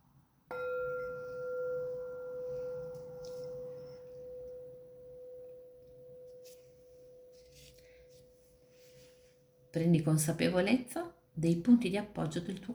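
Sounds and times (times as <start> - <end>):
meditation bell ringing: 0.5 - 8.7
speech: 9.8 - 12.7.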